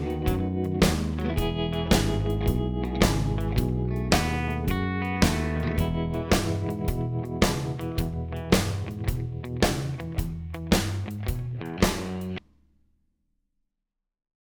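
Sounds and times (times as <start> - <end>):
honky tonk shuffle backing track in E: 0.0 - 12.4.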